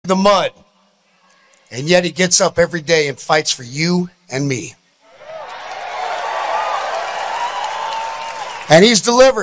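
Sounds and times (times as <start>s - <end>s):
speech: 0.1s - 0.6s, 1.7s - 4.8s, 8.7s - 9.4s
large crowd applauding and cheering at a rally: 5.1s - 9.0s.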